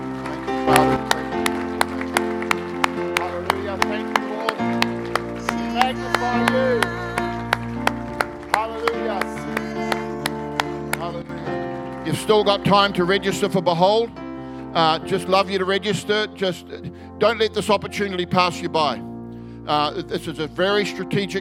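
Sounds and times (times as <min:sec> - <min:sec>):
audience clapping: 0:00.0 - 0:13.5
sustained keyboard or organ chords: 0:00.0 - 0:21.4
melodic voice line: 0:00.5 - 0:13.8
speech: 0:12.3 - 0:14.2, 0:14.8 - 0:19.1, 0:19.7 - 0:21.4.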